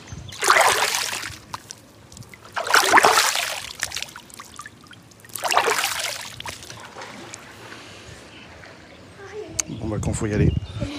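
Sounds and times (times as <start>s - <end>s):
water splashing in a swimming pool at a residential complex: 0.3s - 7.8s.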